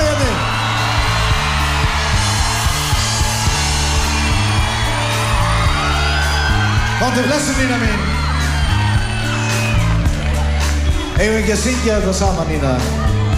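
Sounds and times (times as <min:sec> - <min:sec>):
bass-heavy backing music: 0:00.0 - 0:13.3
crowd clapping and cheering: 0:00.0 - 0:13.3
speech: 0:07.1 - 0:08.1, 0:11.2 - 0:13.2.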